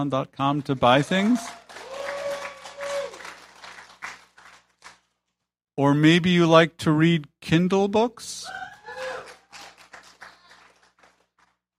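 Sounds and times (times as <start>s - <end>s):
speech: 0.0s - 1.9s, 5.8s - 8.7s
audience clapping: 0.4s - 5.2s, 8.6s - 11.6s.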